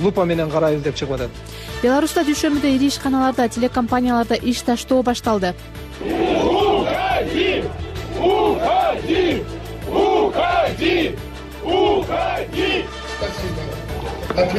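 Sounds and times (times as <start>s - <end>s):
speech: 0.0s - 13.6s, 14.4s - 14.5s
crowd shouting in unison: 6.0s - 13.1s.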